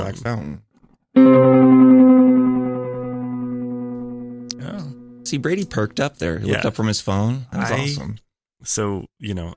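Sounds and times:
speech: 0.0 - 2.1, 5.3 - 9.5
custom guitar effects pedal tone with pulsing modulation: 1.2 - 6.1.

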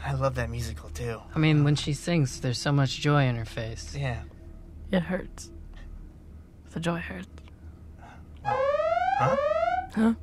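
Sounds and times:
speech: 0.2 - 4.3, 4.9 - 5.6, 6.8 - 7.4, 8.4 - 10.2
alarm going off: 8.4 - 10.1.

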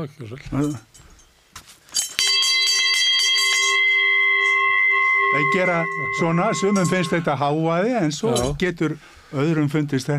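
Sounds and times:
speech: 0.0 - 1.0, 5.4 - 10.1
cowbell ringing: 2.0 - 8.6.

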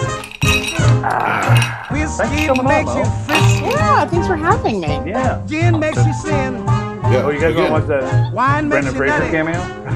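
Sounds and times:
glasses clinking in a toast: 0.1 - 4.3
speech: 1.1 - 9.9.

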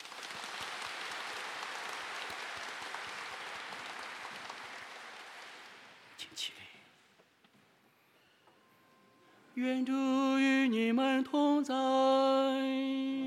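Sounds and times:
audience applause: 0.0 - 6.1
speech: 9.6 - 13.1.

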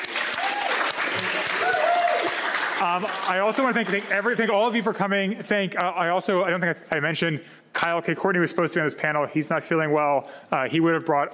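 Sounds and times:
audience applauding: 0.0 - 4.6
speech: 2.8 - 11.3.

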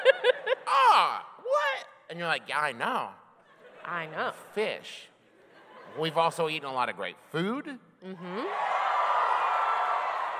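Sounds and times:
laughter: 0.0 - 1.2, 3.4 - 4.5, 5.2 - 6.8
speech: 2.1 - 3.2, 3.8 - 5.1, 5.9 - 8.6
crowd cheering: 8.4 - 10.3.

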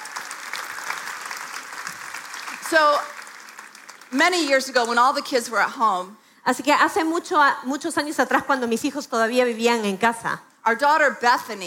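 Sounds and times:
audience applause: 0.0 - 4.4
speech: 2.7 - 3.2, 4.1 - 11.6.

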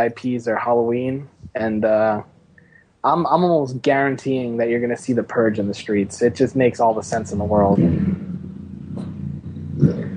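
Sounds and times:
speech: 0.0 - 2.3, 3.0 - 8.3
motorcycle passing outside: 5.8 - 10.1.

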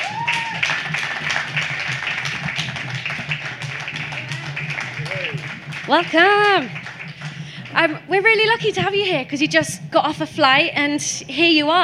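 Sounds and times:
audience applause welcoming a jazz musician: 0.0 - 8.7
speech: 5.9 - 6.8, 7.8 - 11.8.

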